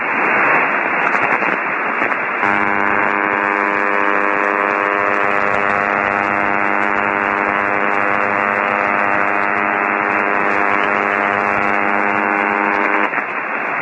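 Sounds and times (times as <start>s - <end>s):
radio receiver hiss: 0.0s - 13.8s
mysterious 100 kHz wide noise on a radio receiver, droning buzz with hum tones: 2.4s - 13.4s.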